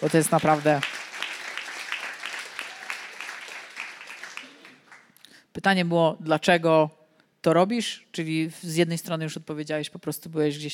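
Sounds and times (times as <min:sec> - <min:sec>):
speech: 0:00.0 - 0:01.0, 0:05.6 - 0:10.7
audience applause: 0:00.0 - 0:05.1.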